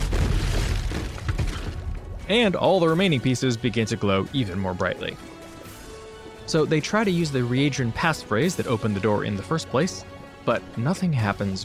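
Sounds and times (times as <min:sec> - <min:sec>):
explosion sound effect: 0:00.0 - 0:02.6
speech: 0:02.3 - 0:05.3, 0:06.5 - 0:11.6.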